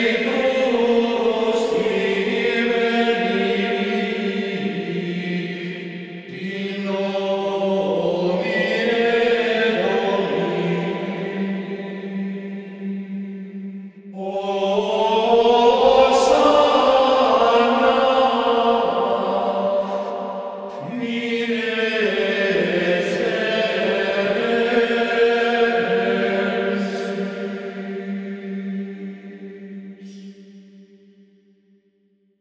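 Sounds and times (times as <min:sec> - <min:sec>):
Gregorian chant: 0:00.0 - 0:30.9.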